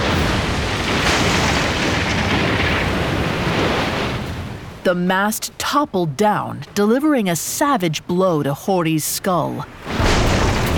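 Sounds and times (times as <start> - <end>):
boat hull shattering from ramming: 0.0 - 4.3, 9.8 - 10.7
speech: 4.9 - 10.0.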